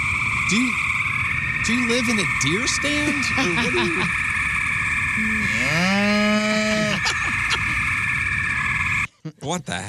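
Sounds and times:
steady high-pitched whine: 0.0 - 9.1
speech: 0.5 - 0.9, 1.6 - 4.2, 5.2 - 7.2, 9.4 - 9.8
laughter: 3.1 - 4.1, 6.5 - 7.8
cow mooing: 5.4 - 6.8.

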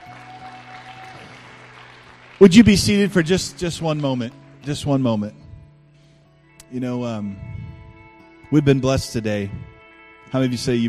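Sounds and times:
audience round of applause: 0.0 - 4.3
speech: 2.4 - 5.4, 6.7 - 7.5, 8.5 - 9.7, 10.3 - 10.8.

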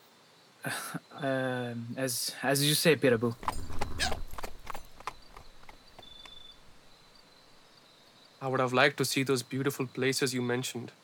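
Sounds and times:
speech: 0.6 - 4.2, 8.4 - 11.0
horse hooves clip-clopping: 3.2 - 7.7.

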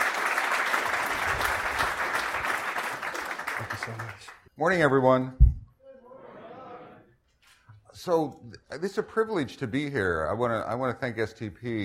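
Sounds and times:
audience applause welcoming a conference speaker: 0.0 - 4.4
speech: 3.9 - 5.4, 8.0 - 11.8.

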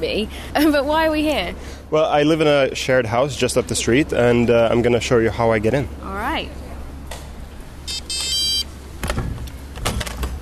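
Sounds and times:
speech: 0.0 - 6.6
low hum: 0.0 - 10.3
electronic lock beeping: 7.9 - 8.7.

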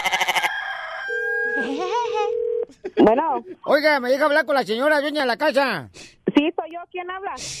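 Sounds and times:
rooster crowing: 0.0 - 1.7
speech: 3.0 - 7.5.

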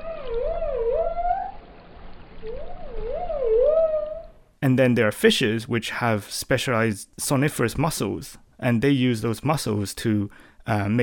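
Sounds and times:
dolphin whistles: 0.0 - 1.6, 2.4 - 4.4
steady low rumble of water noise: 0.0 - 4.6
speech: 4.7 - 11.0.

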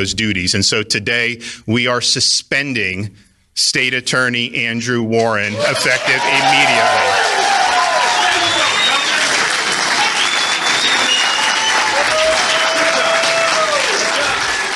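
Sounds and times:
speech: 0.0 - 7.3
applause from a crowd: 5.5 - 14.7.

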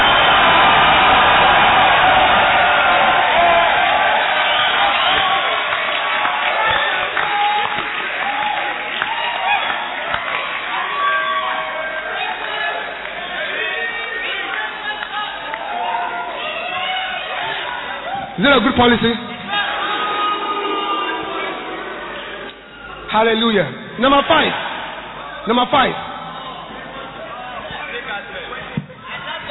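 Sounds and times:
audience clapping: 0.0 - 16.4
audience shouting: 0.0 - 18.4, 19.5 - 23.0
speech: 18.8 - 19.3, 23.1 - 24.7, 25.5 - 26.1.

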